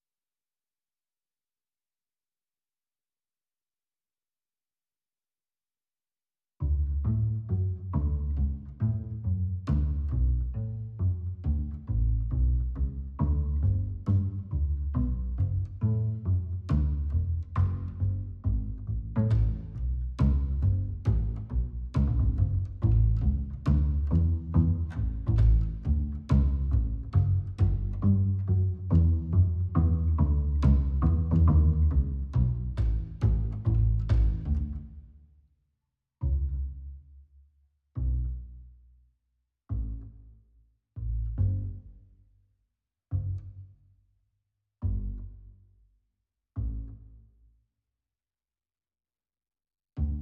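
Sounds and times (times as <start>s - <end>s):
bass: 6.6s - 35.4s, 36.2s - 44.2s, 44.8s - 47.6s, 50.0s - 50.1s.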